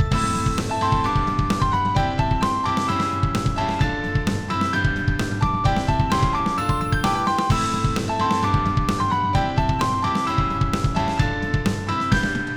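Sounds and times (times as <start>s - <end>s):
battle music: 0.1s - 12.5s.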